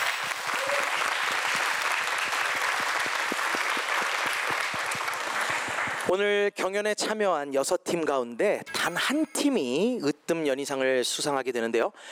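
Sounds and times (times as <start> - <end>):
audience applause: 0.0 - 6.1
speech: 6.1 - 12.0.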